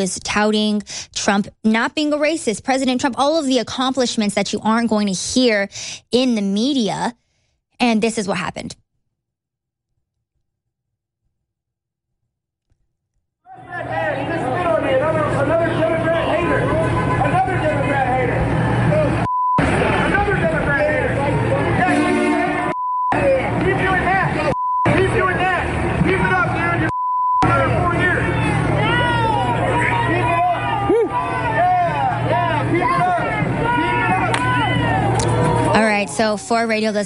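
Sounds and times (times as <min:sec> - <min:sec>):
speech: 0:00.0 - 0:07.2, 0:07.8 - 0:08.8, 0:36.1 - 0:37.0
crowd shouting and jeering: 0:13.5 - 0:36.9.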